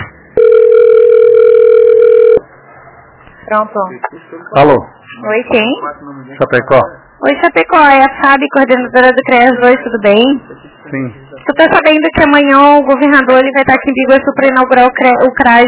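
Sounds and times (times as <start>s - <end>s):
continuous telephone tone: 0.3s - 2.5s
speech: 3.5s - 15.6s.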